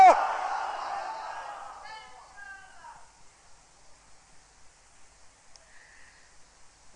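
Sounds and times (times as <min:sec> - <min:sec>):
crowd at an Islamic gathering loudly shouting Insha'Allah together: 0:00.0 - 0:02.1.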